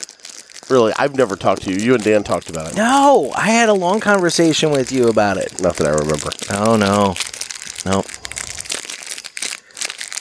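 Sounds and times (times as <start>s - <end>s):
cellophane wrapper crinkling as unwrapped: 0.0s - 10.2s
speech: 0.7s - 8.1s.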